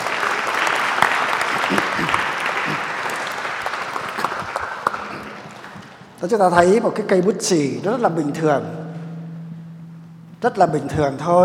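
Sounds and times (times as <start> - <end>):
audience applause: 0.0 - 6.1
speech: 6.2 - 8.9, 10.4 - 11.4.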